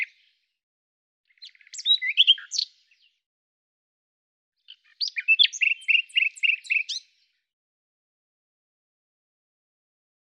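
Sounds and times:
bird song: 0:00.0 - 0:00.6, 0:01.3 - 0:03.3, 0:04.6 - 0:07.5.

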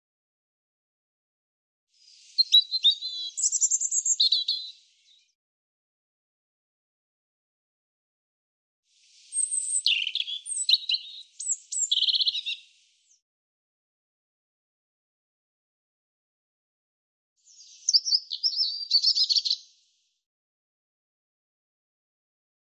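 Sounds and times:
European robin singing: 0:02.0 - 0:05.3, 0:09.2 - 0:12.9, 0:17.5 - 0:19.8.

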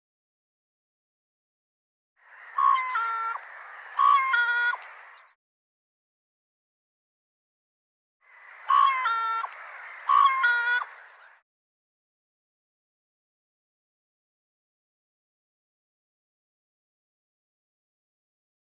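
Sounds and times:
nasal bird calls: 0:02.2 - 0:05.4, 0:08.2 - 0:11.4.

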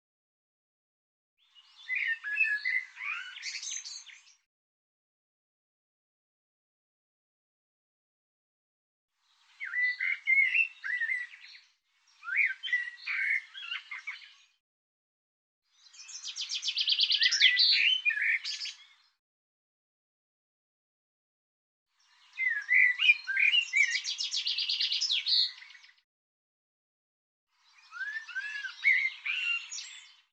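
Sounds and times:
bird song: 0:01.4 - 0:04.5, 0:09.2 - 0:14.6, 0:15.6 - 0:19.2, 0:21.9 - 0:26.0, 0:27.5 - 0:30.3.

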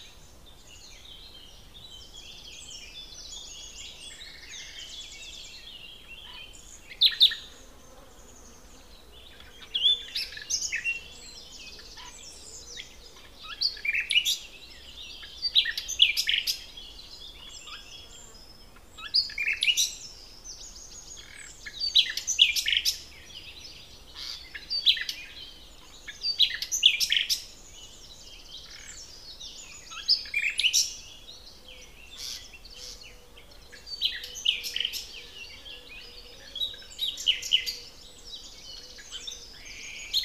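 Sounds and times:
common nightingale song: 0:00.0 - 0:40.2.

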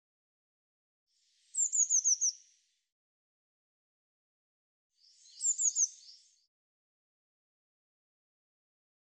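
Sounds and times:
bird singing sharp descending chirps: 0:01.5 - 0:02.4, 0:05.0 - 0:06.5.

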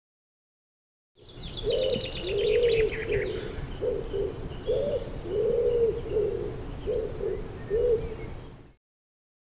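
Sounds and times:
Common Wood Pigeon cooing: 0:01.4 - 0:08.7.

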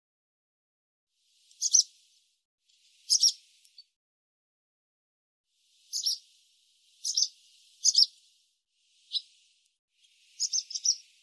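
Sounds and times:
barn swallow twittering: 0:01.5 - 0:01.9, 0:03.0 - 0:03.4, 0:05.9 - 0:06.2, 0:07.0 - 0:08.2, 0:09.0 - 0:09.3, 0:10.0 - 0:11.2.

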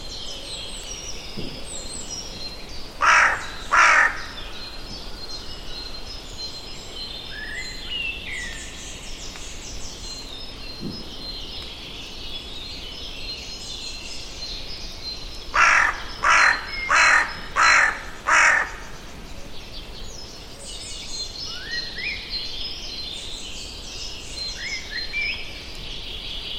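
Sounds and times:
bird giving harsh caws: 0:03.0 - 0:04.4, 0:15.6 - 0:19.0.

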